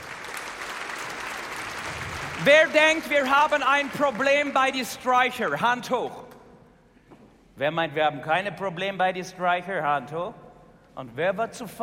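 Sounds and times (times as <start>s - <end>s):
audience applause: 0.0s - 4.8s
speech: 2.4s - 6.2s, 7.6s - 10.4s, 11.0s - 11.8s.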